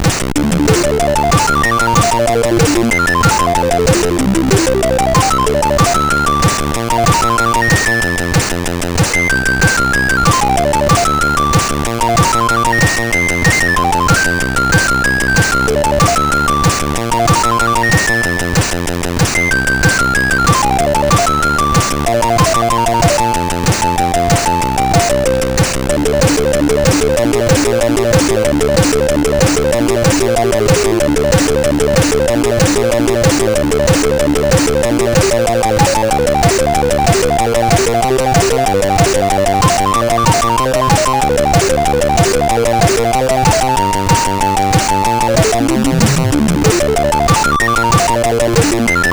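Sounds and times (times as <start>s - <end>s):
RetroChip CSG8580R5 chip music: 0.1s - 49.0s.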